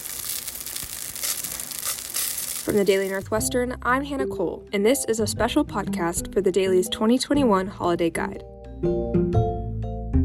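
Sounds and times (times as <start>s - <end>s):
latkes frying in oil: 0.0s - 3.3s
speech: 2.6s - 9.2s.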